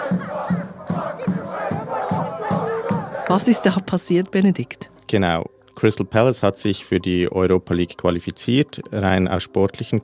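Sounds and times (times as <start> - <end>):
angry football fans chanting and shouting: 0.0 - 4.0
speech: 3.3 - 10.0.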